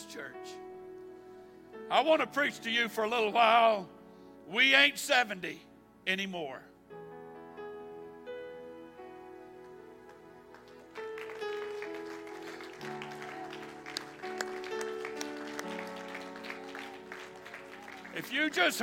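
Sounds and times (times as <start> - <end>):
sustained organ-like music: 0.0 - 18.8
speech: 1.9 - 6.7, 18.2 - 18.8
audience clapping: 10.0 - 18.8.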